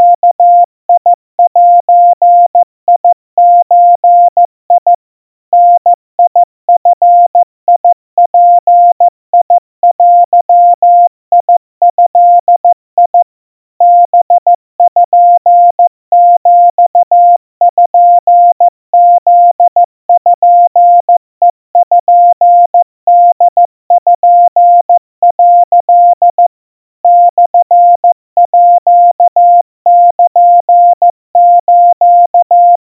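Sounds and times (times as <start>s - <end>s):
Morse code at 50 cpm 700 Hz tone: 0.0s - 32.8s.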